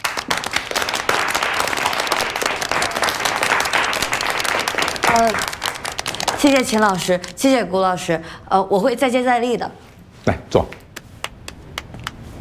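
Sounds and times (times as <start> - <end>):
group applause: 0.0 - 7.3
speech: 5.2 - 5.5, 6.4 - 10.8.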